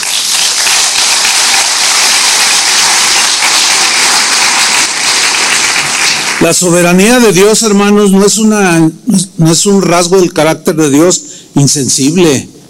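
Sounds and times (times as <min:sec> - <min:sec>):
audience applause: 0:00.0 - 0:06.8
speech: 0:06.4 - 0:12.5.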